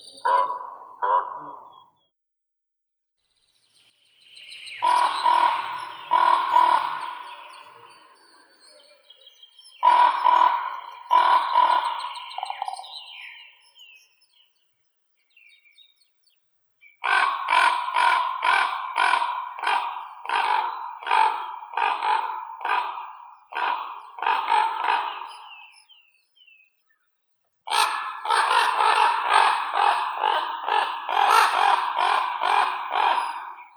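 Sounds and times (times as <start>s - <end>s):
common raven Corvus corax: 0.0s - 1.9s, 4.7s - 14.1s, 17.0s - 26.2s, 27.7s - 33.7s.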